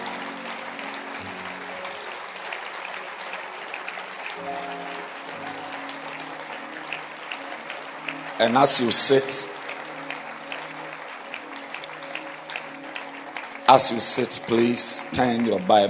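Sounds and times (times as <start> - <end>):
people clapping: 0.0 - 15.8
speech: 8.4 - 9.6, 13.7 - 15.8.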